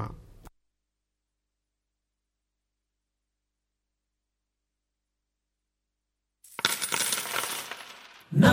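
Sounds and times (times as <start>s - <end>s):
coins dropping and jingling: 6.5s - 8.4s.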